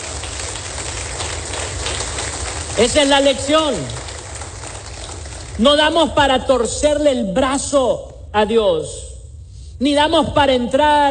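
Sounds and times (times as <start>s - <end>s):
audience applause: 0.0s - 5.6s
speech: 2.8s - 4.0s, 5.6s - 9.1s, 9.8s - 11.0s.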